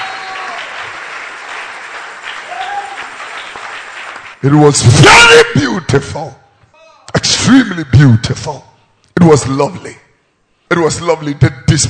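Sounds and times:
audience applause: 0.0 - 4.4
speech: 4.4 - 6.4, 7.5 - 10.0, 10.7 - 11.8.

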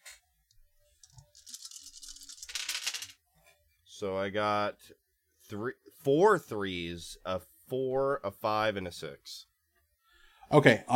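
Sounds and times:
dice rattling across a hard surface: 1.0 - 3.2
speech: 4.0 - 9.5, 10.5 - 10.9.

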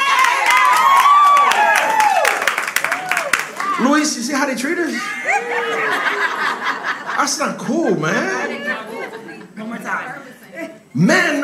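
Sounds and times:
scattered clapping: 0.0 - 3.8
crowd cheering: 0.0 - 4.2, 5.0 - 7.1
speech: 4.0 - 8.6, 9.8 - 11.4
laughter: 5.0 - 9.8.

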